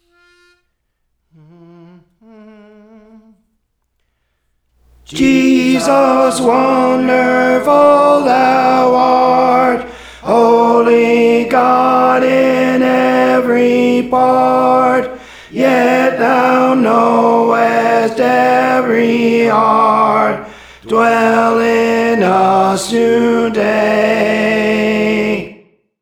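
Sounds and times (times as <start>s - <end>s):
tenor singing: 4.9s - 25.6s.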